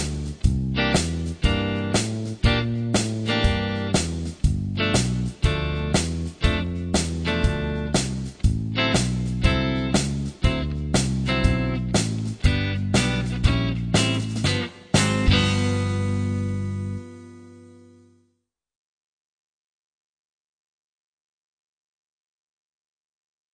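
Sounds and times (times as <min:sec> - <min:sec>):
rock and blues guitar solos: 0:00.0 - 0:18.0.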